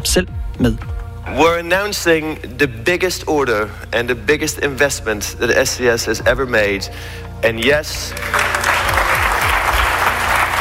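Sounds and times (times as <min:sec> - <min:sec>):
speech: 0:00.1 - 0:08.7
crowd applause after SAS announced its biggest aircraft order: 0:08.1 - 0:10.5.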